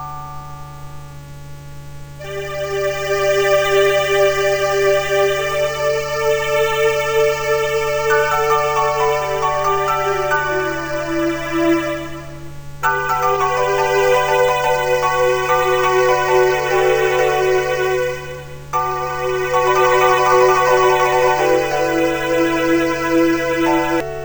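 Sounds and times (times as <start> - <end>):
concerto music: 2.2 - 24.2.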